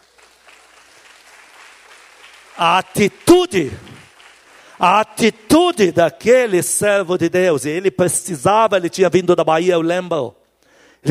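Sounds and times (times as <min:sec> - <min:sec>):
audience applause: 0:00.0 - 0:05.6
speech: 0:02.6 - 0:03.9, 0:04.8 - 0:10.4.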